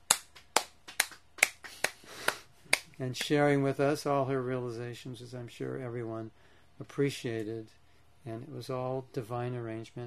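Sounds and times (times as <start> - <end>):
faint clapping for a guest speaker at a Krishna devotional gathering: 0.0 - 3.4
speech: 3.0 - 10.0.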